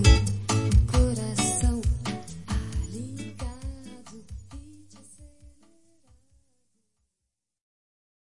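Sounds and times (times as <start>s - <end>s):
fast beat: 0.0s - 6.4s.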